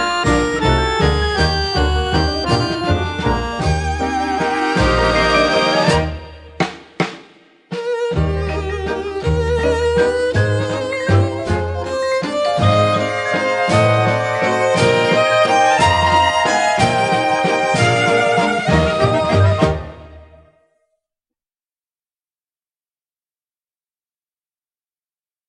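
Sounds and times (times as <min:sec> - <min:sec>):
waltz music: 0:00.0 - 0:06.6, 0:07.8 - 0:20.6.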